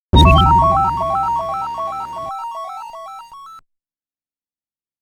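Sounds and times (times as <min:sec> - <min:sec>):
game over sound: 0:00.2 - 0:03.4.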